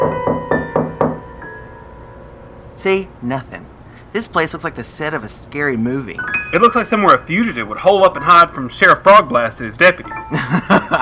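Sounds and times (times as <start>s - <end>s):
knocking on the door of an old rundown house: 0.0s - 1.3s
speech: 2.8s - 11.0s
laughter: 10.2s - 11.0s.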